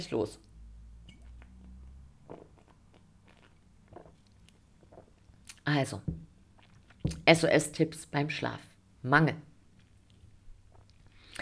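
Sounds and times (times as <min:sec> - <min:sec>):
speech: 0:00.0 - 0:00.5, 0:05.7 - 0:06.2, 0:07.2 - 0:09.5
mouth clicks and gulps: 0:00.4 - 0:07.4, 0:10.0 - 0:11.3
person sipping and swallowing a drink: 0:00.8 - 0:07.3, 0:10.0 - 0:11.3.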